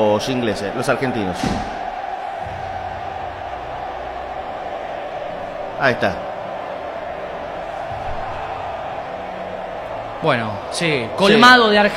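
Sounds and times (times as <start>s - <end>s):
speech: 0.0s - 1.8s, 5.8s - 6.3s, 10.2s - 11.9s
stadium crowd singing a national anthem: 1.0s - 10.2s.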